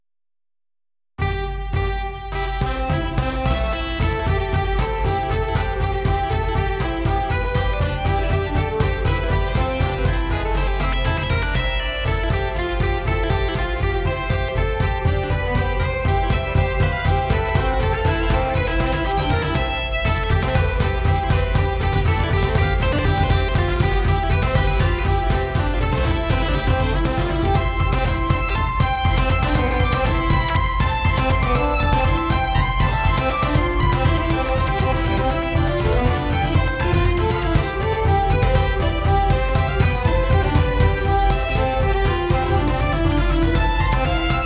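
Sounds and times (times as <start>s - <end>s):
Highlands folk music: 1.2s - 44.4s.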